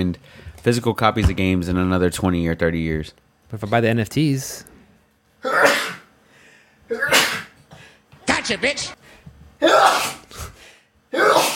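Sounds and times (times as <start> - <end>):
speech: 0.1 - 4.7, 8.5 - 9.0, 9.6 - 10.5
sneeze: 5.4 - 6.1, 6.9 - 7.6, 9.6 - 10.4, 11.1 - 11.5.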